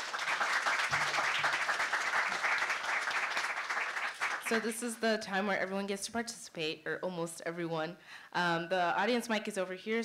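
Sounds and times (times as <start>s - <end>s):
crowd applause: 0.0s - 4.5s
speech: 4.5s - 10.0s.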